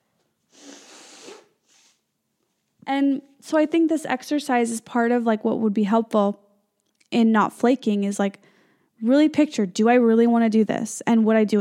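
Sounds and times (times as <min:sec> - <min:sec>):
person blowing nose: 0:00.5 - 0:02.0
speech: 0:02.9 - 0:06.4, 0:07.1 - 0:11.5.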